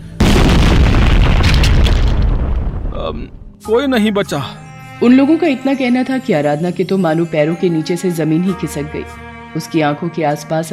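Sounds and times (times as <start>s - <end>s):
bomb blast explosion: 0.2s - 3.4s
speech: 3.1s - 10.7s.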